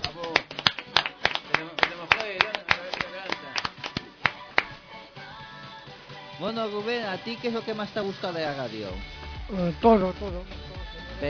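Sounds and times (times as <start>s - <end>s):
applause: 0.0s - 4.8s
speech: 6.4s - 10.6s.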